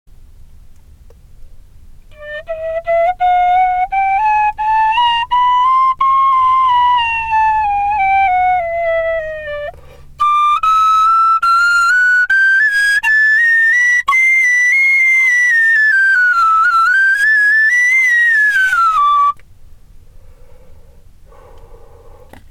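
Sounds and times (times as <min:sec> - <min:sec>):
tin whistle: 0:02.1 - 0:19.4.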